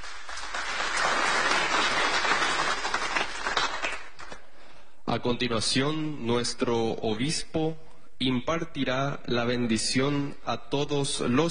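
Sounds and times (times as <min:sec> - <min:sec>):
crowd applause: 0:00.0 - 0:04.4
speech: 0:05.2 - 0:11.4.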